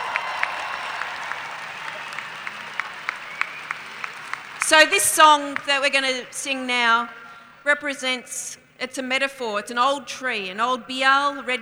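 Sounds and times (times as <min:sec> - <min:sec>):
audience cheering: 0:00.0 - 0:06.5
speech: 0:04.7 - 0:11.6.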